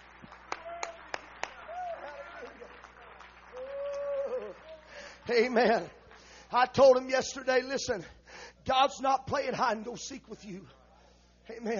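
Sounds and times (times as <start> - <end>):
audience hand claps: 0.0 - 5.1
speech: 5.3 - 10.8, 11.5 - 11.7.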